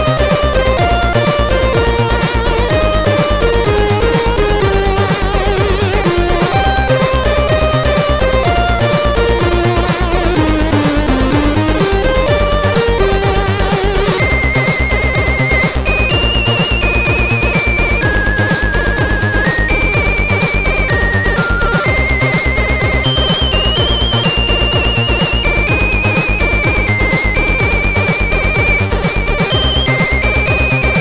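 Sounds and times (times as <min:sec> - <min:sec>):
SID CSG8580R5 chip intro music: 0:00.0 - 0:30.9.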